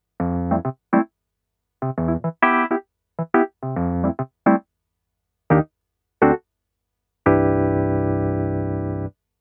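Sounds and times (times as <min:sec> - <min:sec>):
60s amp piano on a Casio PX-S3100: 0:00.2 - 0:01.1, 0:01.8 - 0:04.6, 0:05.5 - 0:06.4, 0:07.3 - 0:09.1.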